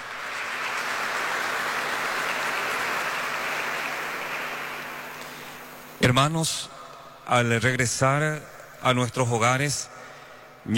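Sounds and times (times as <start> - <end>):
audience applause: 0.0 - 6.0
speech: 6.0 - 9.9.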